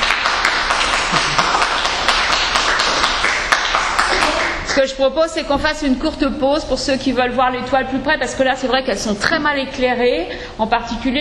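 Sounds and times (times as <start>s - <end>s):
applause: 0.0s - 4.8s
speech: 4.8s - 11.2s.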